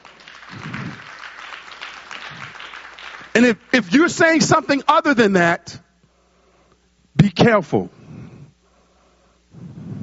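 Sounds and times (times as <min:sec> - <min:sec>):
audience clapping hands: 0:00.0 - 0:04.9
speech: 0:03.4 - 0:05.8, 0:07.3 - 0:08.0.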